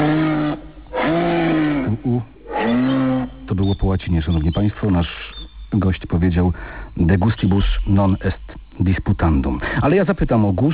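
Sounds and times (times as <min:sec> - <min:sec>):
moose bellowing: 0:00.0 - 0:05.6
speech: 0:03.9 - 0:10.7.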